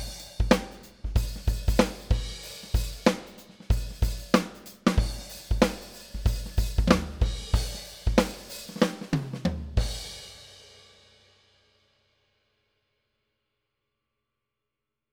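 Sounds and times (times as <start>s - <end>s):
soul drum groove at 94 bpm: 0.0s - 11.2s.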